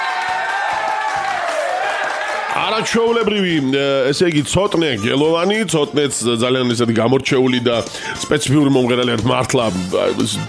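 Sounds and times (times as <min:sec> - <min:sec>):
audience applause for a singer: 0:00.0 - 0:04.4
speech: 0:02.6 - 0:10.4.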